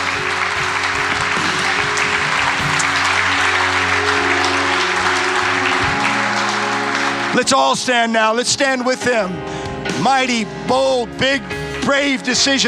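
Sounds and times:
large audience clapping: 0:00.0 - 0:08.2
speech: 0:07.4 - 0:12.6.

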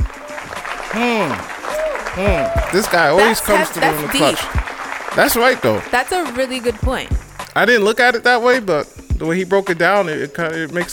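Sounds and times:
hand clap applause: 0:00.0 - 0:07.7
speech: 0:00.9 - 0:01.6, 0:02.2 - 0:10.9.

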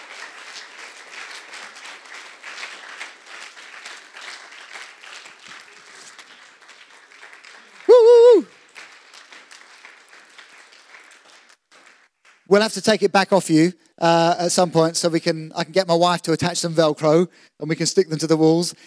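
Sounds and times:
round of applause: 0:00.0 - 0:12.6
speech: 0:12.5 - 0:18.8.

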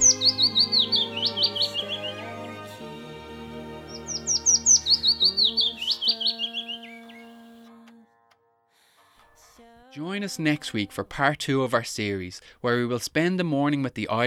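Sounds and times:
small migratory songbird singing: 0:00.0 - 0:07.6
speech: 0:10.0 - 0:14.2.

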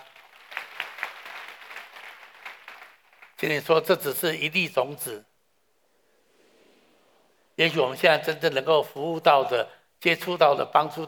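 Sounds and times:
audience applause: 0:00.0 - 0:03.4
speech: 0:03.4 - 0:05.3, 0:07.6 - 0:11.0.

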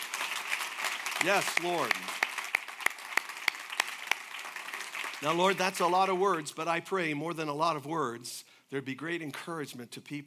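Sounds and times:
audience applauding: 0:00.0 - 0:06.1
speech: 0:01.2 - 0:02.3, 0:05.2 - 0:10.2.

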